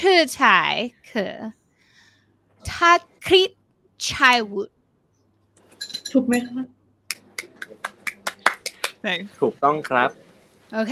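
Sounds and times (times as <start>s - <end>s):
speech: 0.0s - 1.6s, 2.6s - 4.8s, 6.1s - 6.8s, 9.0s - 10.9s
studio audience applause: 7.4s - 9.0s.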